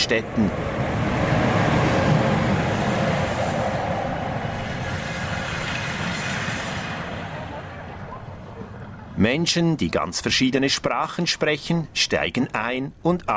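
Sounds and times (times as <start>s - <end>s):
train on the Narvik–Kiruna line rolling into a station and halting: 0.0s - 9.3s
speech: 0.1s - 0.8s, 9.2s - 13.3s.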